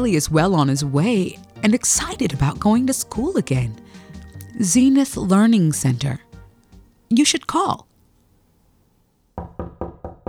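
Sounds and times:
speech: 0:00.0 - 0:03.8, 0:04.6 - 0:06.3, 0:07.1 - 0:07.9
knocking on a door: 0:09.4 - 0:10.2.

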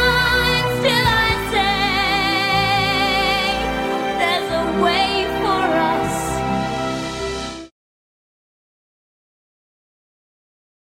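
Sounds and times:
vocal guide track: 0:00.0 - 0:06.6.

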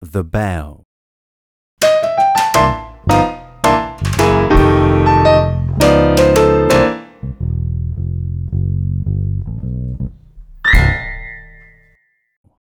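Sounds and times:
exam music: 0:01.8 - 0:11.6.

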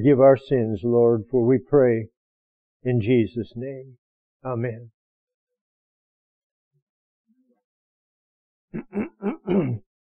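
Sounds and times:
speech: 0:00.0 - 0:02.2, 0:02.8 - 0:05.0, 0:08.7 - 0:09.8
man clearing his throat: 0:08.8 - 0:09.9.

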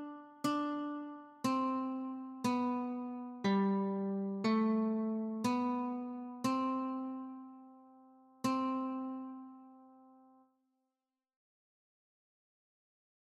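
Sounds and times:
guitar notes: 0:00.0 - 0:10.4.

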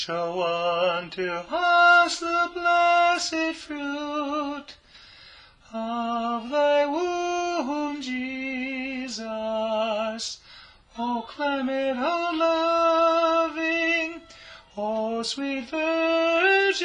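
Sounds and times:
tenor singing a hymn: 0:00.0 - 0:04.8, 0:05.7 - 0:16.8.

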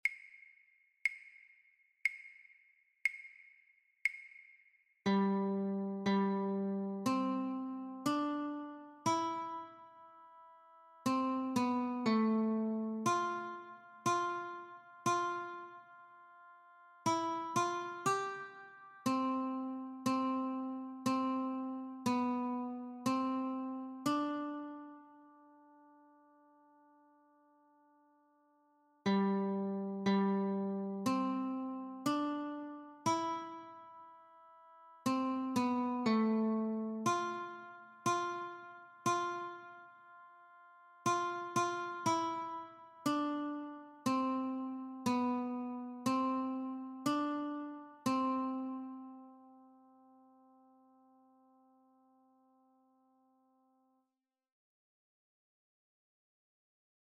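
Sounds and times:
guitar notes: 0:05.0 - 0:27.9, 0:29.0 - 0:51.7.

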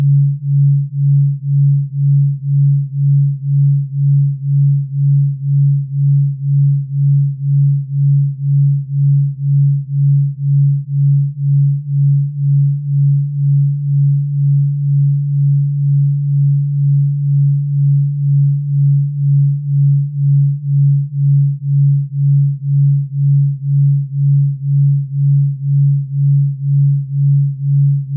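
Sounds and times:
2Hz delta wave tone: 0:00.0 - 0:28.1.

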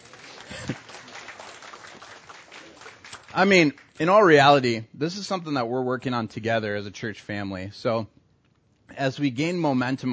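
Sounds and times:
audience applauding: 0:00.0 - 0:04.0
speech: 0:03.4 - 0:08.2, 0:09.0 - 0:10.1.

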